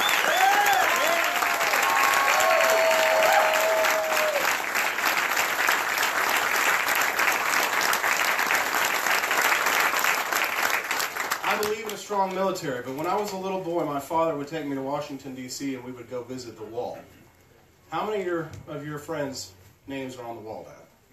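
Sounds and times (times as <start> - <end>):
audience applause: 0.0 - 12.0
speech: 12.2 - 17.2, 17.9 - 20.8.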